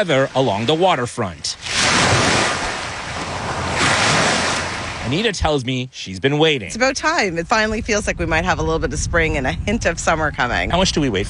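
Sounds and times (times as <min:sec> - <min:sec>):
speech: 0:00.0 - 0:02.4, 0:05.1 - 0:11.2
waves washing onto a beach: 0:00.0 - 0:05.3
gusty wind rumble: 0:01.6 - 0:05.5, 0:06.6 - 0:11.2.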